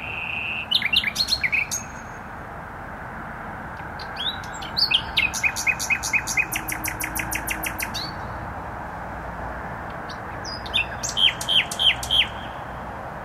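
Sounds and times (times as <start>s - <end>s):
nightingale singing: 0.0s - 2.4s, 3.8s - 8.4s, 9.9s - 12.7s
traffic noise: 0.0s - 13.2s.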